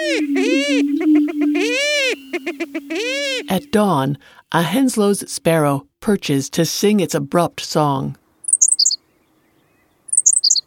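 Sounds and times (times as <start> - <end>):
greater prairie chickens whooping courtship calls: 0.0 - 4.0
speech: 3.5 - 8.2.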